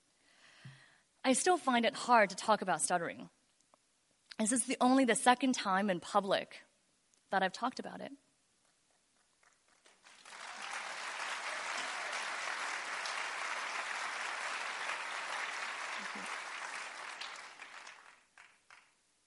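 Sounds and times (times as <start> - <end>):
speech: 1.3 - 3.4, 4.4 - 6.7, 7.3 - 8.2
audience applause: 9.8 - 18.9.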